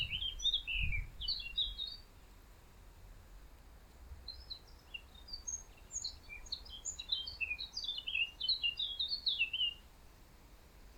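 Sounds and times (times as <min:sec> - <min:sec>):
Eurasian blackcap twittering, Sylvia atricapilla: 0:00.0 - 0:02.0, 0:04.3 - 0:09.8.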